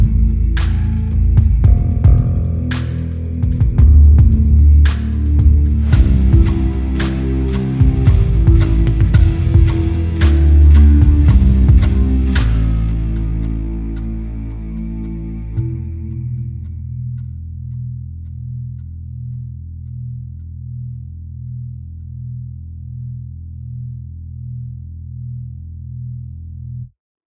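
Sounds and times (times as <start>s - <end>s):
backing track: 0.0s - 17.5s.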